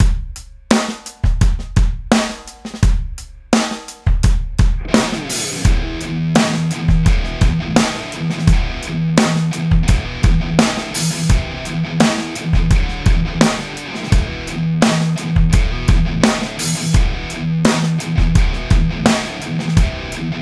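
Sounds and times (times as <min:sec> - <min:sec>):
drum: 0:00.0 - 0:20.4.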